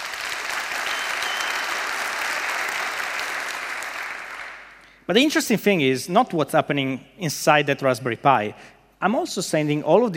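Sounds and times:
audience clapping: 0:00.0 - 0:05.0
speech: 0:05.1 - 0:10.1.

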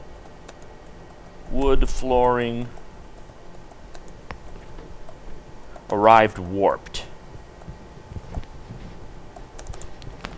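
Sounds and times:
low hiss: 0:00.0 - 0:09.7
keyboard typing as a comment is entered: 0:00.2 - 0:06.1, 0:09.3 - 0:10.3
speech: 0:01.5 - 0:02.8, 0:05.9 - 0:07.1.

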